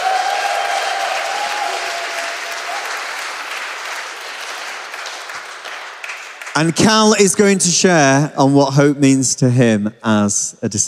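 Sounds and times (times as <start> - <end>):
church congregation applauding to welcome a speaker: 0.0 - 7.5
speech: 6.6 - 10.8.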